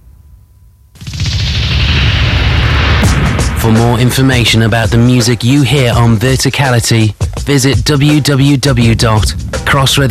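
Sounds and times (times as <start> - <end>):
explosion sound effect: 1.0 - 5.4
speech: 3.6 - 10.1.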